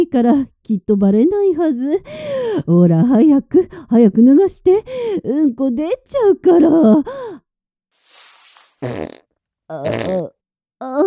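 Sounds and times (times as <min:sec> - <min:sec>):
speech: 0:00.0 - 0:07.4, 0:08.8 - 0:11.0
fart: 0:08.1 - 0:10.4.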